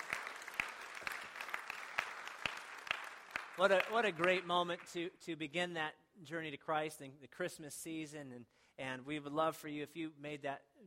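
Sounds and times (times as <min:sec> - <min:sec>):
crowd applauding: 0:00.0 - 0:05.0
speech: 0:03.6 - 0:10.8.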